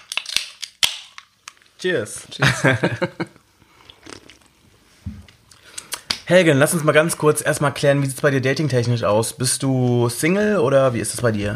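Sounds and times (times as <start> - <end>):
crunching on spiced snack chips: 0.0 - 1.6
speech: 1.8 - 3.4, 6.3 - 11.5
laughter: 2.4 - 3.4.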